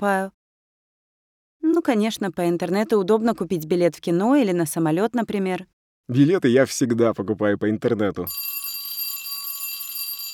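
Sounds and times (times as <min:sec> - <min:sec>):
speech: 0:00.0 - 0:00.4, 0:01.7 - 0:08.6
school bell ringing for class: 0:08.3 - 0:10.3.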